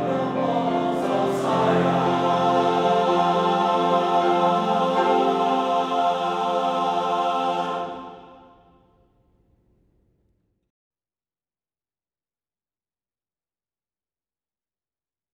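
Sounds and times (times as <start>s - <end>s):
men's choir singing: 0.0s - 8.8s.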